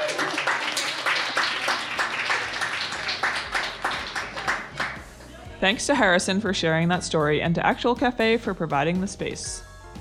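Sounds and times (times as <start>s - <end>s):
applause: 0.0s - 5.1s
speech: 5.6s - 9.7s.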